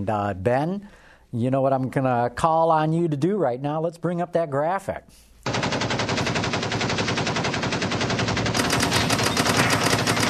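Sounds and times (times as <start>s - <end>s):
speech: 0.0s - 5.9s
machine gun fire sound effect: 5.4s - 10.2s.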